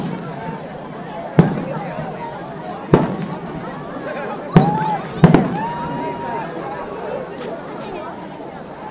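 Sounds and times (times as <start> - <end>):
fireworks exploding at a festival: 0.0 - 0.7, 1.3 - 3.9, 4.5 - 6.1.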